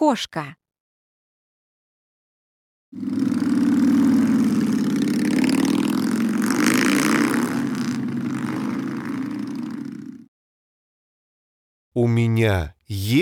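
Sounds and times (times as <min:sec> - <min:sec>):
speech: 0:00.0 - 0:00.6, 0:02.9 - 0:03.3, 0:12.0 - 0:13.2
motorcycle engine droning: 0:03.0 - 0:10.3.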